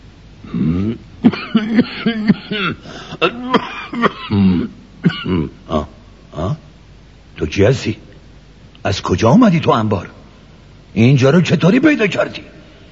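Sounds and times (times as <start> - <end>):
frightened rich man coughing in a narrated children's story: 0.5 - 6.6
speech: 2.6 - 3.6, 7.5 - 8.1, 8.8 - 10.2, 10.9 - 12.6.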